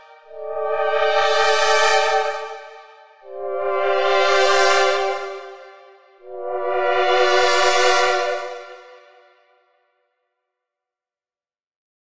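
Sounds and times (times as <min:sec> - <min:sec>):
synth pads: 0:00.0 - 0:09.2.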